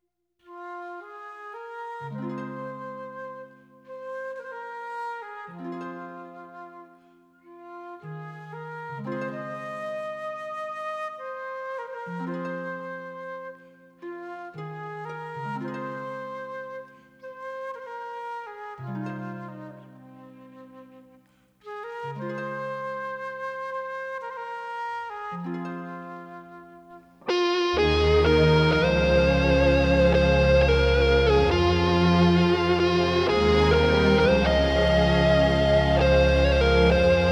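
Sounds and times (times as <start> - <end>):
Irish instrumental air: 27.3 - 37.3.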